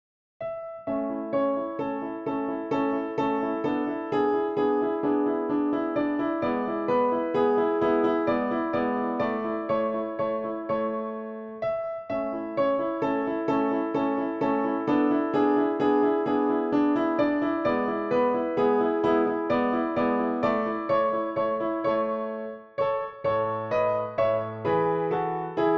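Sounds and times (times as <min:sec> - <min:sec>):
dance music on a PianoTeq Bechstein piano: 0:00.4 - 0:25.7.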